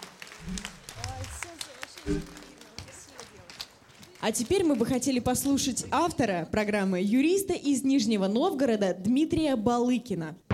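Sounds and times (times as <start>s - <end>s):
applause: 0.0s - 5.9s
speech: 2.0s - 2.4s, 4.2s - 10.4s.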